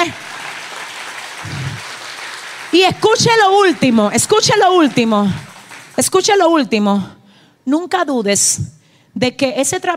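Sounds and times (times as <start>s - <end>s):
speech: 0.0s - 0.3s, 2.7s - 9.9s
audience applauding loudly: 0.0s - 6.2s.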